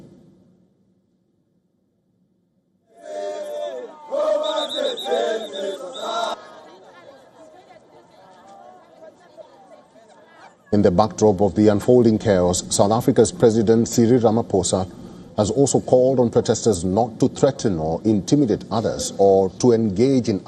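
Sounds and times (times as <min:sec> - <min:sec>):
protest crowd chanting slogans: 0:02.9 - 0:10.5
crowd chatter and murmuring: 0:03.0 - 0:18.0
speech: 0:10.7 - 0:20.4.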